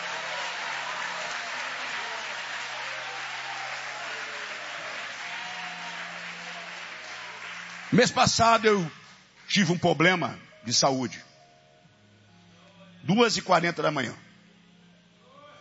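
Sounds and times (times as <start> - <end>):
crowd clapping hands: 0.0 - 9.8
low musical drone: 0.0 - 15.5
speech: 7.9 - 11.3, 13.1 - 14.2.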